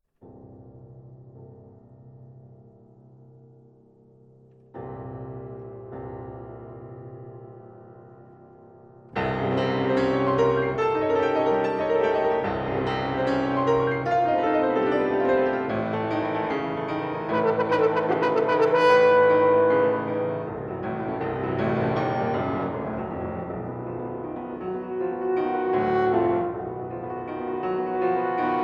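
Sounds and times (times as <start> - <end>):
horn and piano sonata: 9.2 - 28.6.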